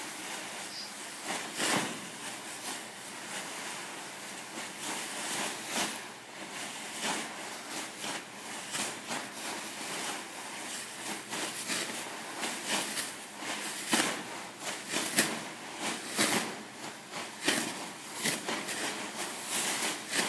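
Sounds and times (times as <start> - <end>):
plastic bag waving: 0.0 - 20.2.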